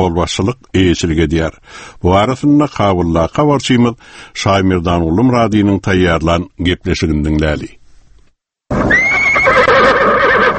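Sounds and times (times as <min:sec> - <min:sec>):
speech: 0:00.0 - 0:07.8
horse of Afghan president Hamid Karzai whinnying: 0:08.7 - 0:10.5.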